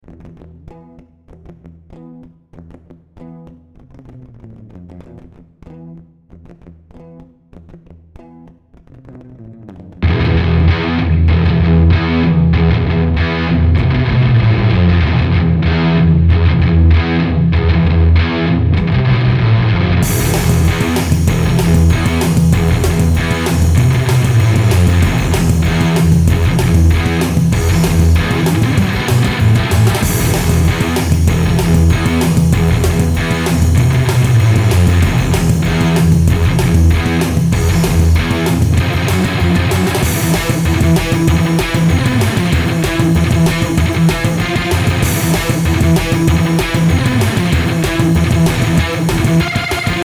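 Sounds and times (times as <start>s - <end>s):
metal music: 10.0s - 50.0s.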